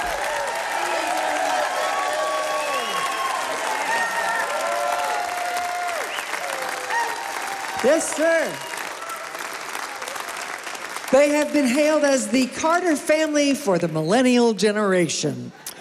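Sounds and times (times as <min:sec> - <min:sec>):
audience applause: 0:00.0 - 0:12.0
speech: 0:07.8 - 0:08.7, 0:11.1 - 0:15.6.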